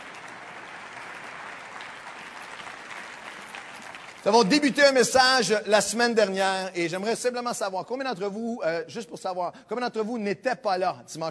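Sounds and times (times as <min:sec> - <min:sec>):
audience applauding: 0:00.0 - 0:05.1
speech: 0:04.2 - 0:11.2.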